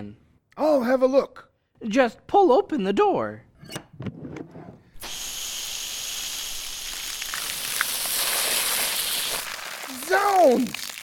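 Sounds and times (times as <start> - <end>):
speech: 0.0 - 4.2, 10.1 - 10.8
water jet spraying: 5.0 - 11.0.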